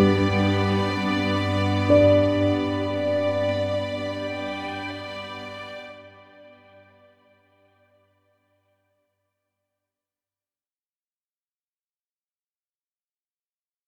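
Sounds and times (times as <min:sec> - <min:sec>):
delicate ambient music: 0:00.0 - 0:07.0.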